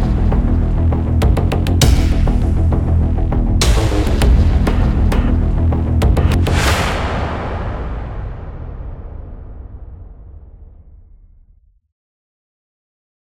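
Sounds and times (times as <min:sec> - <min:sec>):
epic battle music: 0:00.0 - 0:09.2.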